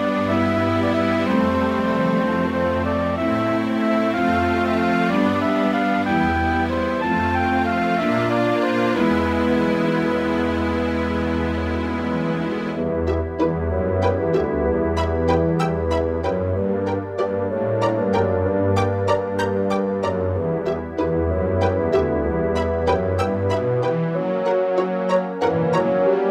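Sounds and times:
NEC XR385 sound module in GS mode: 0:00.2 - 0:26.2.

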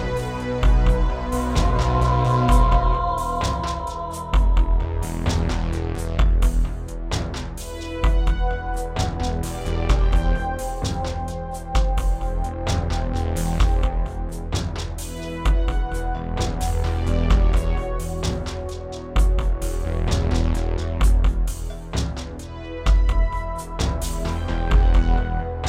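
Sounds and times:
Yamaha SHS-500 keytar: 0:00.0 - 0:25.0.

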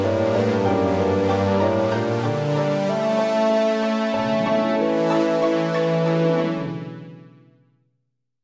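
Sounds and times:
Roland SD-90 sound module music in GM2 mode: 0:00.0 - 0:07.6.

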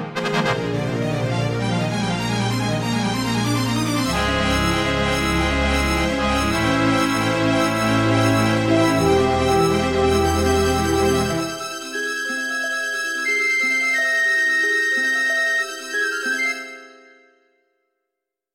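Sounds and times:
Yamaha MU500 tone generator music intro in GS mode: 0:00.0 - 0:17.2.

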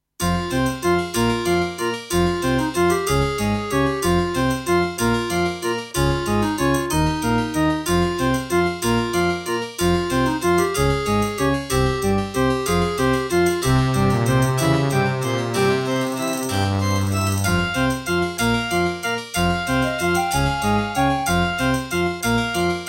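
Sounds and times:
Doepfer GMX-1 synthesizer: 0:00.5 - 0:22.8.

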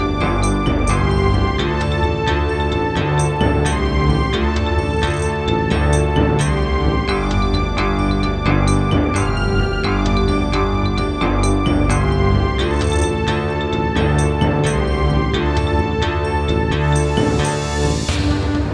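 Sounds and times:
wavetable synthesizer: 0:00.0 - 0:18.6.

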